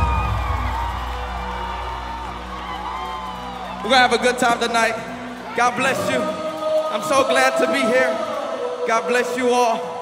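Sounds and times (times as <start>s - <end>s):
crowd cheering and whooping: 0.0s - 7.0s
speech: 3.8s - 9.9s.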